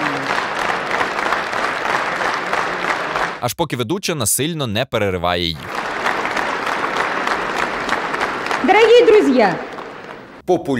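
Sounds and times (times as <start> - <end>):
concert audience applause: 0.0 - 3.4, 5.6 - 10.4
speech: 3.4 - 5.7, 8.6 - 9.7, 10.5 - 10.7.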